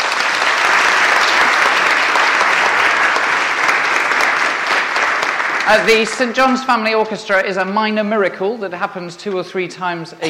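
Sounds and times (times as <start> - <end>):
audience clapping: 0.0 - 6.8
speech: 5.7 - 10.2.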